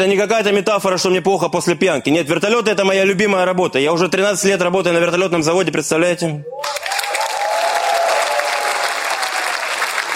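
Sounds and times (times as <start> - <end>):
speech: 0.0 - 6.9
audience applause: 6.6 - 10.1.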